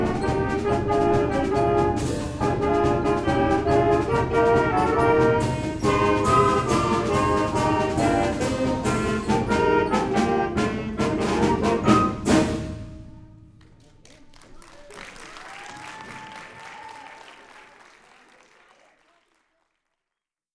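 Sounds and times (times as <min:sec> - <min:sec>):
band playing a fight song at a spring concert: 0:00.0 - 0:13.2.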